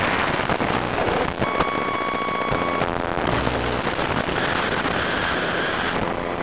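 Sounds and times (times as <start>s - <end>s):
MacBook Air resuming and quitting a Windows 7 virtual machine: 0.2s - 6.2s.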